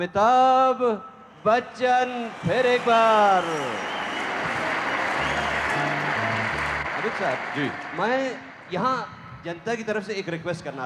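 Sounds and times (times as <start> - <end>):
speech: 0.0 - 4.0, 7.1 - 10.8
crowd applause welcoming a performer back onto the stage: 1.4 - 8.8.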